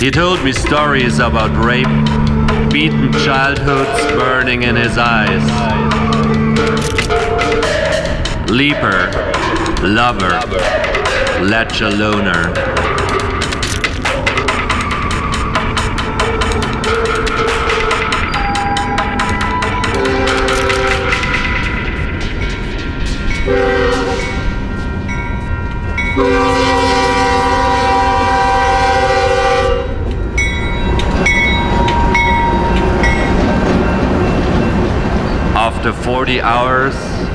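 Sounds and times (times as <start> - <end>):
speech: 0.0 - 7.8, 8.5 - 12.9, 26.2 - 26.8, 35.8 - 37.2
freight train rumbling and rattling: 0.0 - 37.3
freight train horn blasts: 0.7 - 8.0, 15.7 - 21.5, 23.5 - 24.7, 26.2 - 30.1.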